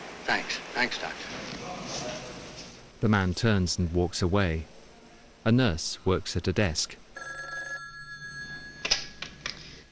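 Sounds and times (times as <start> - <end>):
speech: 0.3 - 2.3, 3.0 - 4.8, 5.4 - 7.0
telephone ringing at a nurse's desk in a hospital: 7.2 - 9.4.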